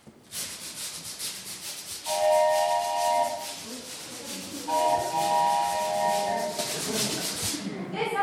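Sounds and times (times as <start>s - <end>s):
imitation train made by brushing a suitcase: 0.3s - 7.6s
long bright whistle blast: 2.1s - 3.4s, 4.7s - 6.5s
laughter: 3.7s - 8.0s.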